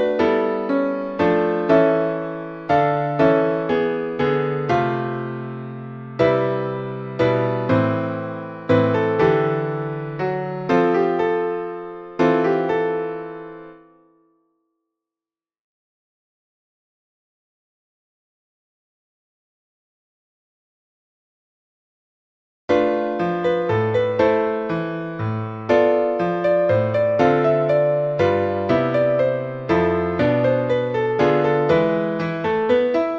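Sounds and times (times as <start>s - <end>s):
piano piece: 0.0s - 14.4s, 22.7s - 33.1s.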